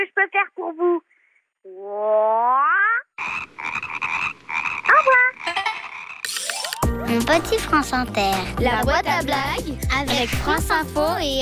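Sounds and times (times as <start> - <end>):
speech: 0.2 - 2.7, 7.1 - 11.4
frog croaking: 1.7 - 6.8.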